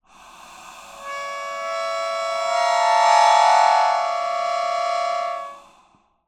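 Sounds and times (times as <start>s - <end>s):
melodica playing clusters: 1.0s - 5.6s.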